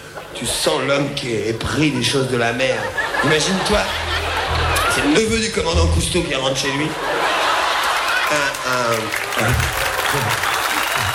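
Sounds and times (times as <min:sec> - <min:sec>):
speech: 0:00.2 - 0:04.2, 0:05.0 - 0:07.2, 0:08.3 - 0:11.1
laughter: 0:01.8 - 0:06.0, 0:06.6 - 0:11.1
audience applause: 0:07.2 - 0:11.1.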